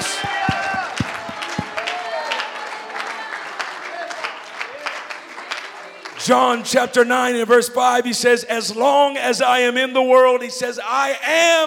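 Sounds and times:
people shouting: 0:00.0 - 0:02.7
crowd clapping: 0:00.0 - 0:07.0
speech: 0:06.3 - 0:11.6.

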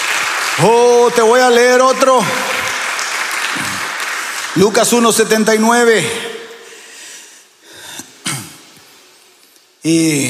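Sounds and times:
strong applause from audience: 0:00.0 - 0:06.6
speech: 0:00.6 - 0:02.5, 0:04.6 - 0:06.3, 0:09.8 - 0:10.2.

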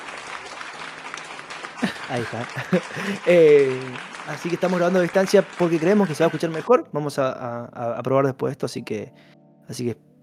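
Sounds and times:
applause sound effect: 0:00.0 - 0:06.8
laughter: 0:01.8 - 0:06.7
speech: 0:02.1 - 0:10.1.

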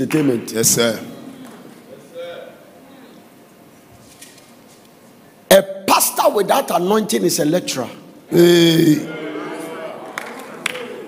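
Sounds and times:
speech: 0:00.0 - 0:01.1, 0:06.4 - 0:09.2
clapping: 0:10.0 - 0:11.0.

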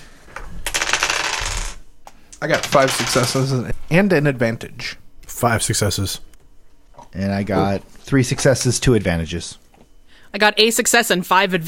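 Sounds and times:
dice being rolled: 0:00.6 - 0:01.8, 0:02.5 - 0:03.5
speech: 0:02.4 - 0:06.3, 0:07.1 - 0:09.6, 0:10.3 - 0:11.6.

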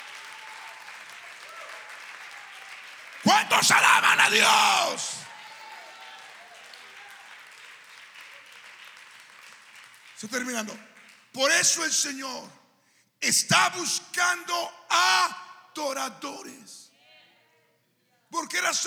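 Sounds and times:
cheers and whoops: 0:00.0 - 0:07.5
audience applause: 0:00.0 - 0:11.3
speech: 0:03.3 - 0:05.2, 0:10.2 - 0:12.6, 0:13.2 - 0:16.9, 0:18.3 - 0:18.8.

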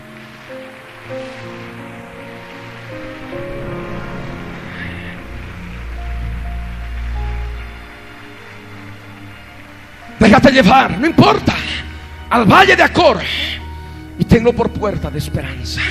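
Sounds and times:
applause: 0:00.0 - 0:12.3
speech: 0:00.5 - 0:01.7, 0:10.2 - 0:11.6, 0:12.3 - 0:13.6, 0:14.2 - 0:15.8.

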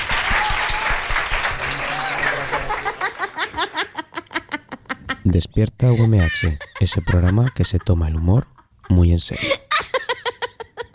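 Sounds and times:
audience applause: 0:00.0 - 0:04.0
fast rhythmic unison clapping: 0:00.0 - 0:04.0
laughter: 0:01.6 - 0:10.9
speech: 0:05.3 - 0:09.6.

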